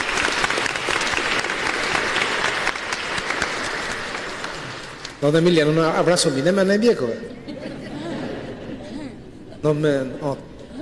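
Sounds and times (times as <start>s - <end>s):
audience applause: 0.0s - 5.4s
speech: 5.2s - 7.4s, 9.6s - 10.5s
laughter: 7.0s - 10.7s.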